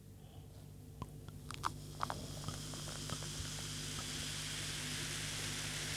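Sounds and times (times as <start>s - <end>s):
low constant hum: 0.0s - 5.9s
bubbly drink poured into a glass: 2.2s - 5.9s.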